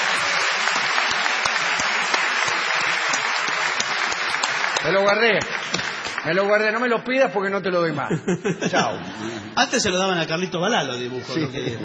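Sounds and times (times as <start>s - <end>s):
applause: 0.0s - 6.9s
speech: 4.8s - 11.8s
laughter: 8.0s - 9.6s, 11.4s - 11.8s.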